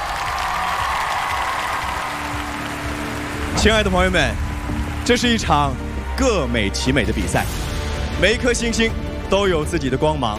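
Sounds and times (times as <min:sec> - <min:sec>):
large crowd applause: 0:00.0 - 0:07.6
speech: 0:03.6 - 0:07.6, 0:08.2 - 0:10.3.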